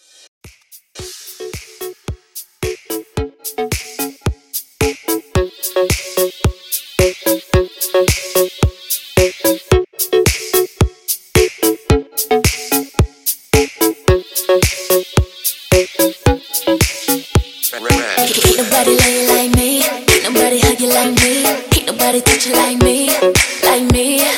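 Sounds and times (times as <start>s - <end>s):
R&B beat at 110 bpm: 0.5s - 24.3s.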